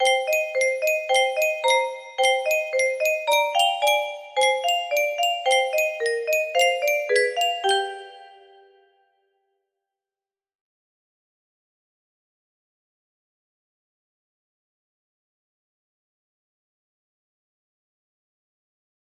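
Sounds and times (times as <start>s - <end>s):
lullaby: 0.0s - 9.0s.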